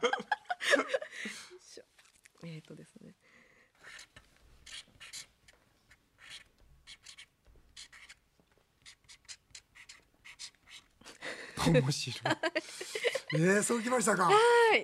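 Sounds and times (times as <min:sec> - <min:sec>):
laughter: 0:00.0 - 0:01.3, 0:11.2 - 0:14.3
pen scratching across paper writing a wish: 0:03.8 - 0:10.9, 0:13.6 - 0:14.5
speech: 0:11.7 - 0:12.6, 0:13.3 - 0:14.8.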